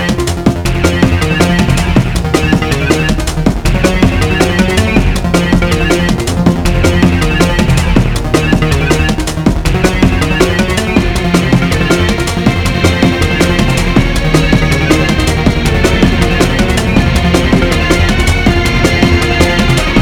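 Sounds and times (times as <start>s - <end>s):
slower invigorating outer space exploration style music: 0.0s - 20.0s.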